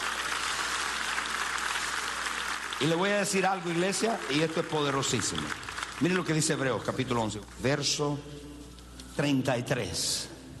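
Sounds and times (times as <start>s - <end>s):
applause: 0.0s - 7.3s
speech: 2.8s - 8.5s, 9.2s - 10.3s.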